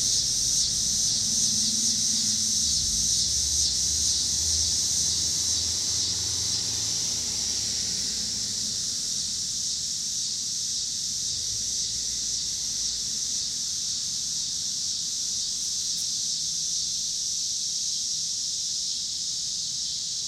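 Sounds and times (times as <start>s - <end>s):
low car rumble: 0.0s - 9.7s
cicadas buzzing: 0.0s - 20.2s.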